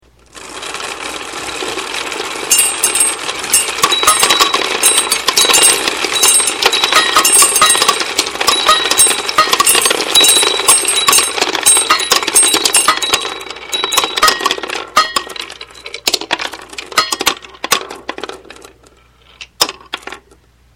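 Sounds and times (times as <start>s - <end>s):
machine running: 0.0s - 17.7s.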